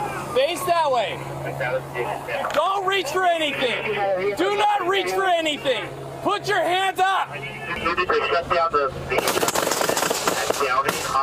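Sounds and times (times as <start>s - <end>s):
speech: 0.4s - 9.4s, 10.6s - 11.2s
gunfire between suspect and police: 9.2s - 11.2s.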